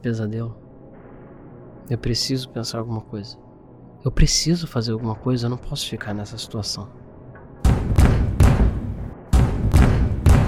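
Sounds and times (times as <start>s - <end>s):
speech: 0.0s - 0.6s, 1.9s - 3.4s, 4.0s - 7.0s
knocking on a door: 7.6s - 10.4s.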